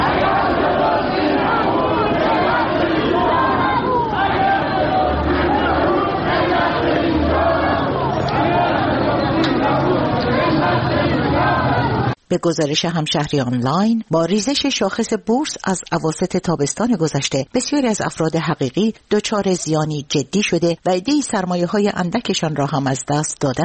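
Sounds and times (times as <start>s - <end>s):
protesting crowd shouting: 0.0s - 12.2s
speech: 12.3s - 23.6s.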